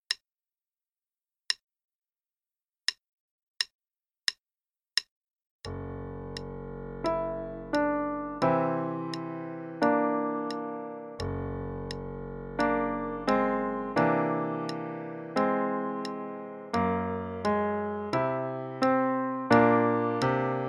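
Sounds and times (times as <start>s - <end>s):
improvised music: 5.7s - 20.6s.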